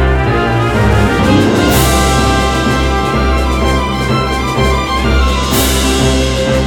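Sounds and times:
dungeon clear game music intro: 0.2s - 6.5s.

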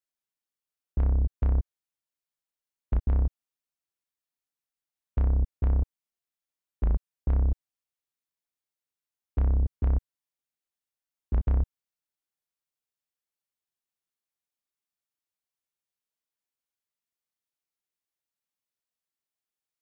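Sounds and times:
bass: 1.0s - 1.7s, 2.9s - 3.4s, 5.2s - 5.9s, 6.8s - 7.6s, 9.4s - 10.0s, 11.3s - 11.7s.

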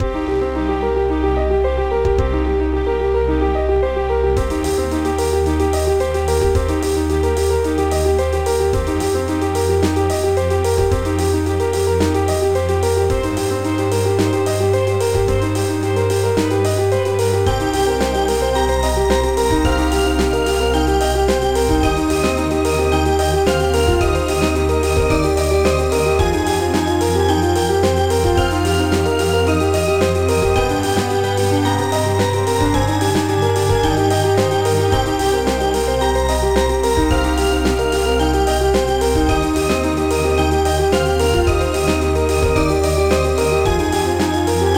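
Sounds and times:
electrowave music: 0.0s - 44.7s.

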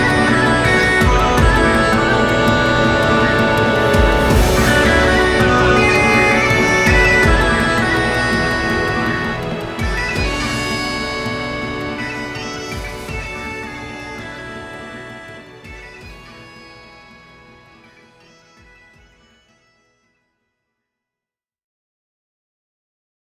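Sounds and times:
battle background music: 0.0s - 12.2s.

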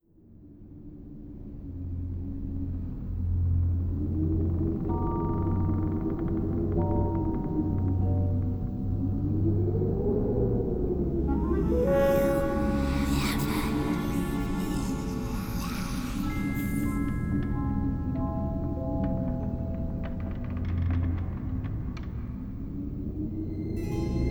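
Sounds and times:
ambience: 1.0s - 24.2s
undead voices: 11.2s - 17.7s.

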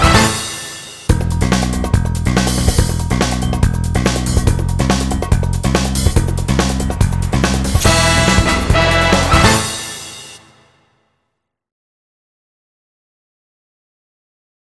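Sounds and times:
music: 0.0s - 11.6s.

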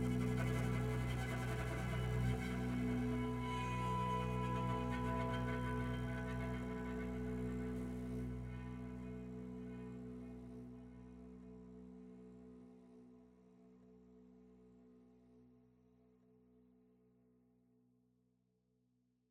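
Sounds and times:
solo string instrument: 0.0s - 13.1s.

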